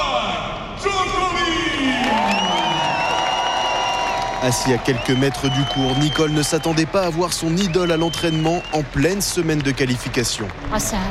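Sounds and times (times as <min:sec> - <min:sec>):
tennis stadium crowd roaring and cheering: 0:00.0 - 0:11.0
tennis stadium crowd whooping and shouting: 0:01.1 - 0:09.5
speech: 0:04.4 - 0:11.0.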